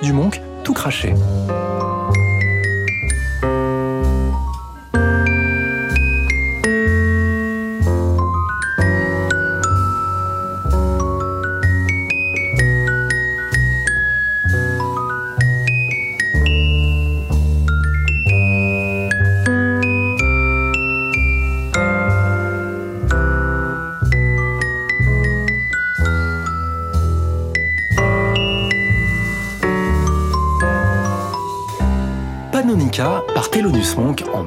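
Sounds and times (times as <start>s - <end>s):
speech: 0.0s - 1.9s, 33.0s - 34.4s
celesta in a jazz solo: 0.0s - 34.4s
low piano chords in a jazz solo: 0.0s - 34.4s.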